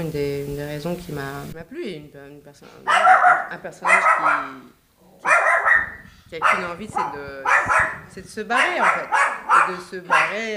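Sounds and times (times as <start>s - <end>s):
speech: 0.0s - 5.3s, 6.3s - 10.5s
dog barking: 2.8s - 10.5s.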